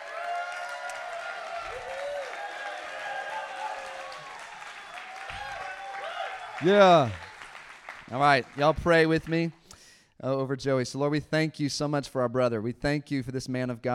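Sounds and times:
church congregation clapping as a speaker is welcomed on stage: 0.0 - 9.6
speech: 6.6 - 7.2, 8.1 - 9.6, 10.2 - 13.9.

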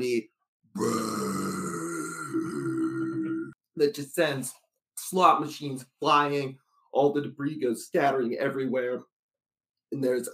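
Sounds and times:
speech: 0.0 - 1.2, 3.8 - 9.1, 9.9 - 10.3
loud mighty belch: 0.8 - 3.5.

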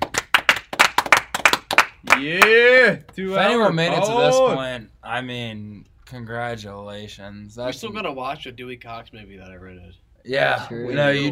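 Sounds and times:
hands clapping: 0.0 - 3.3
speech: 2.0 - 11.2.

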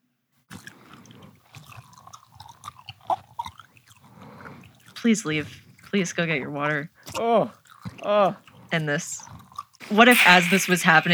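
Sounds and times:
speech: 5.0 - 9.3, 9.9 - 11.1
mouth sounds into a microphone: 9.8 - 11.1.

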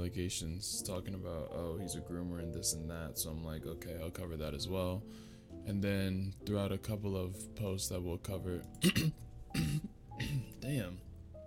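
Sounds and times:
speech: 0.0 - 11.1
throat clearing interrupted by hiccups: 8.8 - 10.5.

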